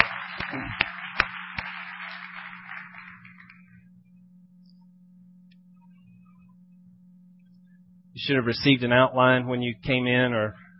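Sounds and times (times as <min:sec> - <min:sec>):
church audience applause: 0:00.0 - 0:03.7
low steady hum: 0:00.0 - 0:10.7
speech: 0:08.2 - 0:10.6.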